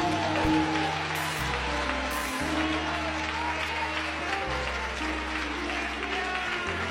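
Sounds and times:
applause: 0:00.0 - 0:06.8.

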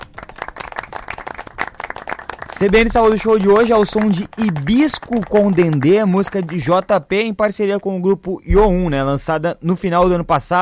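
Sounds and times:
applause: 0:00.0 - 0:07.2
speech: 0:02.6 - 0:10.6.

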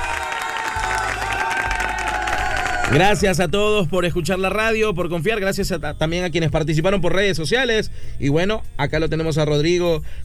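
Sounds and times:
applause: 0:00.0 - 0:03.2
speech: 0:02.9 - 0:10.2.

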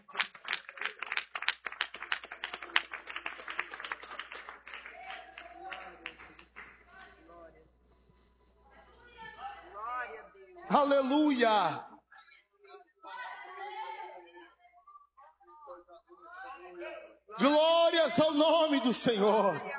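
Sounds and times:
audience clapping hands: 0:00.0 - 0:07.5
speech: 0:10.7 - 0:11.9, 0:18.2 - 0:19.7.

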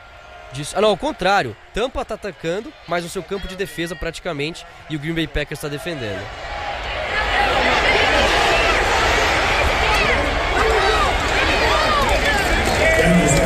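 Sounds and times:
stadium crowd cheering at American football game: 0:00.0 - 0:13.4
speech: 0:00.5 - 0:06.5.

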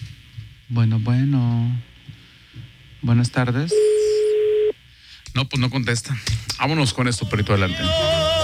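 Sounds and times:
speech: 0:00.7 - 0:01.9, 0:02.5 - 0:03.9, 0:05.3 - 0:08.3
telephone ringing on a prank call: 0:03.7 - 0:04.7.

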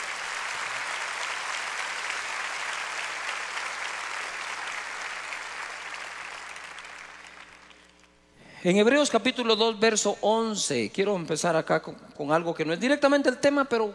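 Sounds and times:
audience applause: 0:00.0 - 0:07.9
speech: 0:08.6 - 0:13.9.

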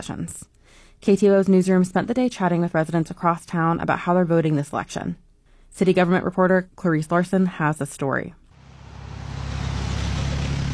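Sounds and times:
speech: 0:00.0 - 0:08.4
cars zooming past the Juneau-Douglas Bridge intersection in the rain: 0:08.6 - 0:10.7.

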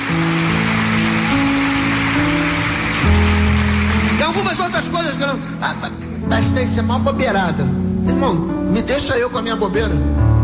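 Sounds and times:
audience applause: 0:00.0 - 0:06.0
speech: 0:04.4 - 0:10.3.

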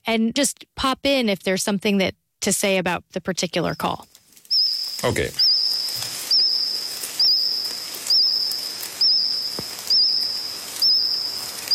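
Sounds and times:
speech: 0:00.1 - 0:04.1, 0:05.0 - 0:05.4
cricket singing: 0:03.7 - 0:11.7.

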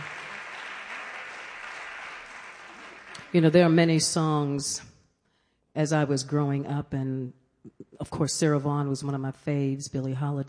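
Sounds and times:
round of applause after a live vocal ballad arrangement: 0:00.0 - 0:03.4
speech: 0:03.3 - 0:04.9, 0:05.8 - 0:10.4.

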